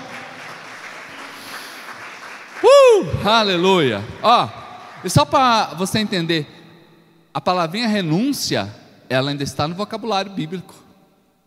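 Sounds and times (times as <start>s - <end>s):
audience applauding: 0.0s - 5.5s
speech: 3.0s - 6.6s, 7.4s - 10.8s.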